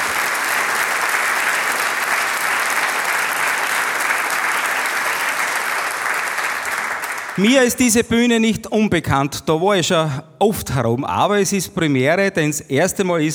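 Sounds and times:
audience applause: 0:00.0 - 0:07.8
speech: 0:07.4 - 0:13.3.

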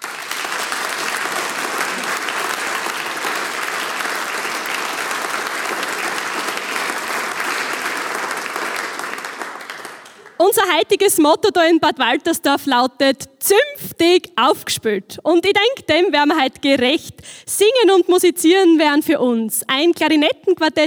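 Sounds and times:
audience applause: 0:00.0 - 0:10.4
speech: 0:10.5 - 0:20.8.

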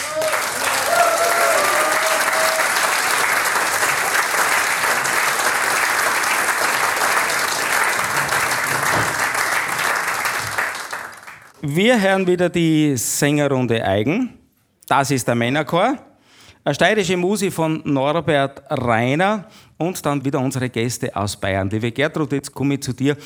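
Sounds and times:
faint voices or cheers: 0:00.0 - 0:03.9
sustained audience applause: 0:00.0 - 0:11.6
speech: 0:11.7 - 0:23.2.

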